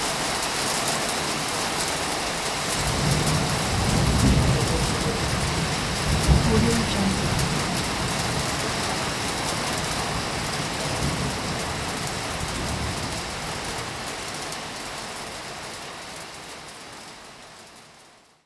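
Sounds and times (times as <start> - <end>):
hail: 0.0 - 17.4
thunder: 2.7 - 13.6.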